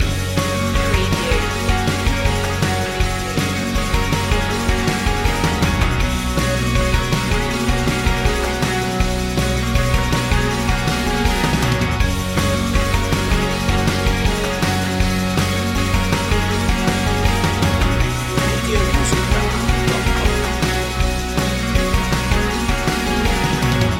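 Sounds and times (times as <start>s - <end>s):
music loop: 0.0s - 23.9s.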